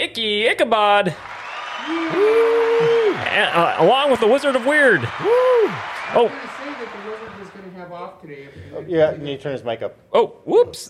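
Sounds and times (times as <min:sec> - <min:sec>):
speech: 0:00.2 - 0:10.8
soundboard crowd applause: 0:01.0 - 0:07.9.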